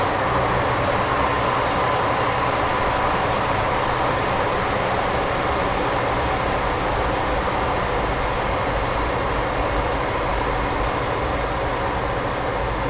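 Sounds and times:
CA-27 Sabre jet aircraft flying interior: 0.0 - 12.8.

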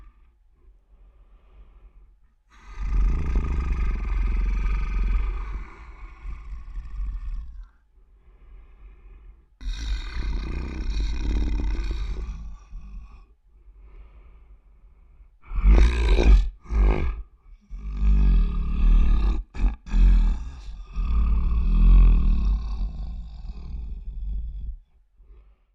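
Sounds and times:
large creature breathing while resting: 0.0 - 25.7
large creature resting grumble: 2.5 - 7.7, 9.6 - 13.2, 15.4 - 24.8.

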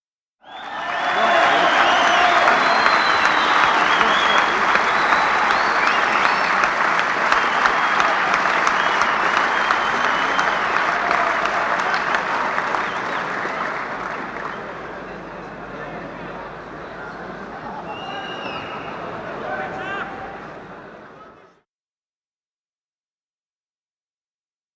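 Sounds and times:
applause: 0.4 - 15.7.

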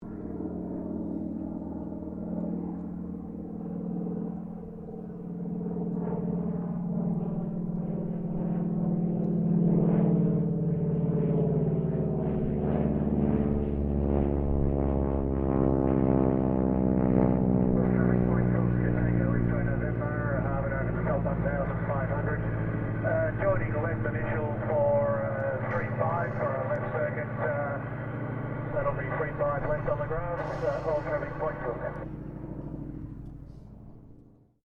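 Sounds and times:
AT-6D Harvard Mk IIB training aircraft slow pass: 0.0 - 34.5
radio chatter: 17.9 - 28.0, 28.6 - 32.2.

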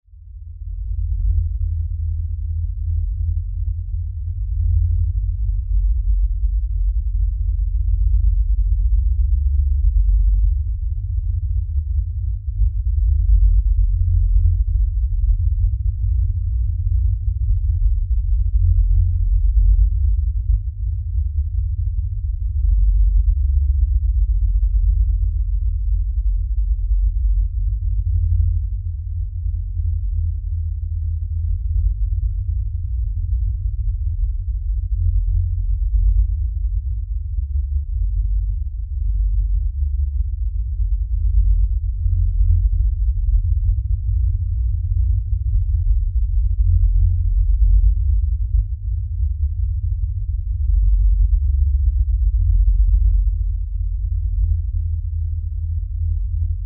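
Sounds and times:
LFE low bass rumble drone: 0.0 - 56.6.

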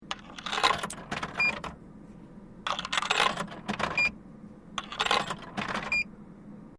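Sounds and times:
coins inserted into a Japanese vending machine: 0.1 - 1.8, 2.7 - 4.1, 4.8 - 6.0.

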